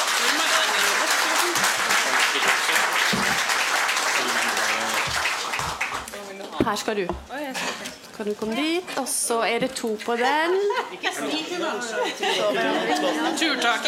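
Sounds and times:
warm audience applause: 0:00.0 - 0:06.2
speech: 0:06.7 - 0:13.8
laughter: 0:10.4 - 0:13.8.

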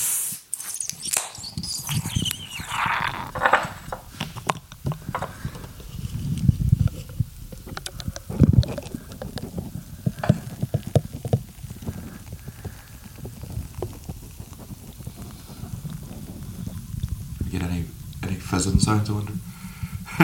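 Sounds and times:
Beamish stout being poured into a glass: 0:00.5 - 0:20.2.

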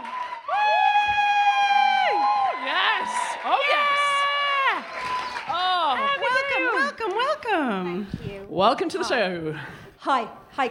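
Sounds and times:
loud sustained high-pitched whoop: 0:00.0 - 0:05.8
chat show audience cheering for a guest walking on: 0:00.0 - 0:07.3
speech: 0:07.5 - 0:10.6.

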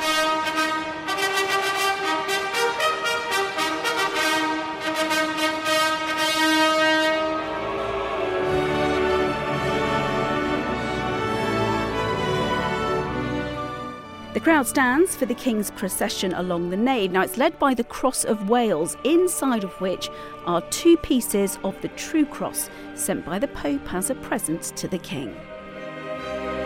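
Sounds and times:
trumpet fanfare announcing king's arrival: 0:00.0 - 0:14.1
speech: 0:14.4 - 0:25.5.

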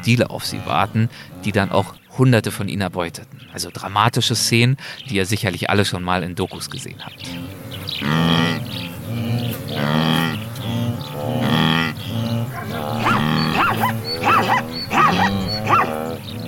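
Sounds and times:
zebra mare calling for her foal: 0:00.0 - 0:02.1, 0:06.6 - 0:16.4
speech: 0:00.0 - 0:08.8, 0:09.8 - 0:10.4.

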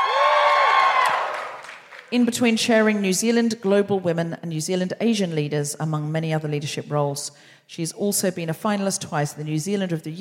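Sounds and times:
audience cheering: 0:00.0 - 0:02.1
speech: 0:02.1 - 0:10.1.

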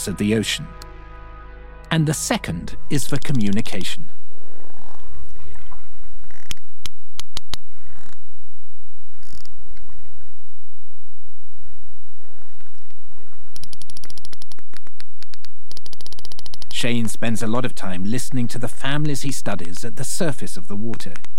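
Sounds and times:
speech: 0:00.0 - 0:00.8, 0:01.9 - 0:04.1, 0:16.8 - 0:21.3
sperm whale clicking: 0:02.9 - 0:08.3, 0:09.0 - 0:10.4, 0:11.5 - 0:21.3.

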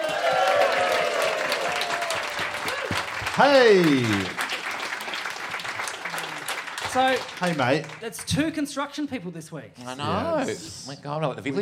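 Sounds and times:
audience applause welcoming a stand-up comedian guest: 0:00.0 - 0:08.4
speech: 0:03.4 - 0:04.4, 0:06.9 - 0:11.6.

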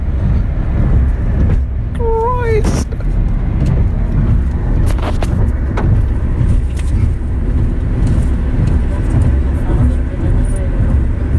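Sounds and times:
car driving fast: 0:00.0 - 0:11.3.

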